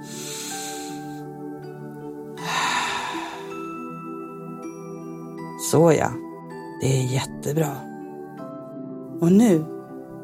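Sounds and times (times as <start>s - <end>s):
deep slow breathing during guided relaxation: 0.0s - 1.3s, 2.4s - 3.8s
soft steady music: 0.0s - 10.2s
speech: 5.7s - 6.2s, 6.8s - 7.9s, 9.2s - 9.8s.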